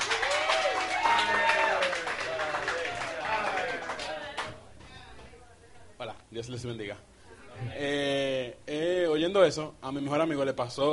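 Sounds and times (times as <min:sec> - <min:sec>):
audience applause: 0:00.0 - 0:04.5
speech: 0:06.4 - 0:10.9.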